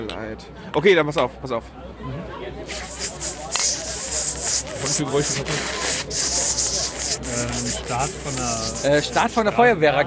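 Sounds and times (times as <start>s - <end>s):
speech: 0.0s - 3.6s, 4.9s - 6.4s, 7.4s - 10.0s
voice imitating bacon sizzling in a pan: 2.7s - 9.3s.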